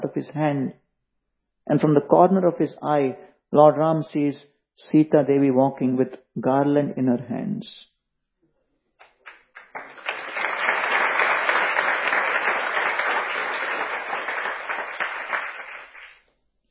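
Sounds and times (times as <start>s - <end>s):
speech: 0.2s - 0.8s, 1.7s - 7.9s
audience clapping: 9.0s - 16.2s.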